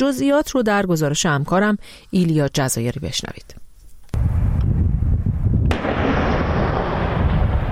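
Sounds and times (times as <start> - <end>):
speech: 0.0 - 3.6
Israeli army artillery fire targeting southern Lebanon: 4.2 - 7.7.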